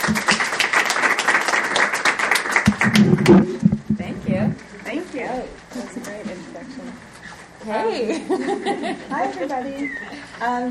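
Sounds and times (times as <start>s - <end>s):
audience applause welcoming presenters to the stage: 0.0s - 3.6s
speech: 3.0s - 3.7s, 7.6s - 10.6s
laughter: 7.9s - 10.4s.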